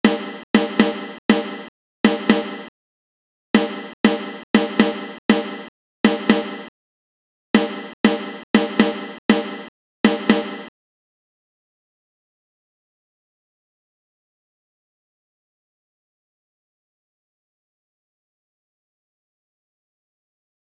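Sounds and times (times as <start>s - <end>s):
snare drum: 0.0s - 2.7s, 3.6s - 6.7s, 7.6s - 10.7s.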